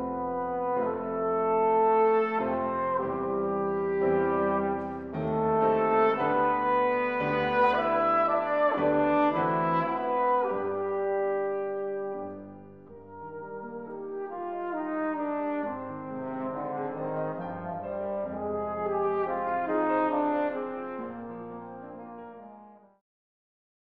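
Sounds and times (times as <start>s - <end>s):
piano in a trio: 0.0s - 23.0s
trombone in a trio: 0.0s - 23.0s
trumpet in a trio: 0.0s - 23.0s.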